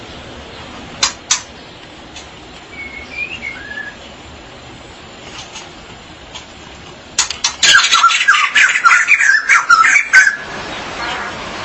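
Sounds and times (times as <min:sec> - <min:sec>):
magpie-robin or shama warbling: 0:00.0 - 0:04.7, 0:07.2 - 0:11.6.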